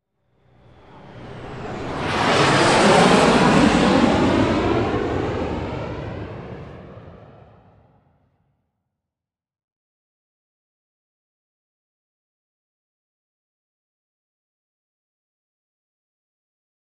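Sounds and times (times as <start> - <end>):
DH.110 Sea Vixen airplane: 0.2 - 8.6.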